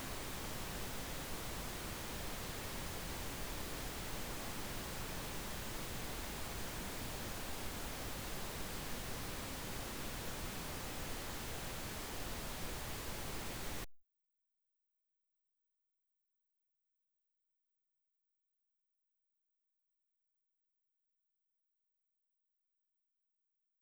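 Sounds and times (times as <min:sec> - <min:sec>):
pink noise UHJ test signal: 0:00.0 - 0:13.9.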